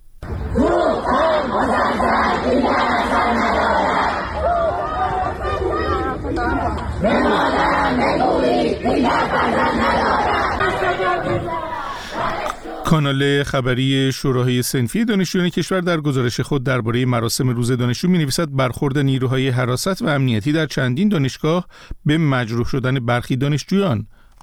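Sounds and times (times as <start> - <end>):
students chanting slogans at Allameh Tabatabai University in Tehran: 0.2 - 13.0
speech: 0.5 - 3.6, 12.9 - 24.4
dense babble of student voices: 10.6 - 13.0.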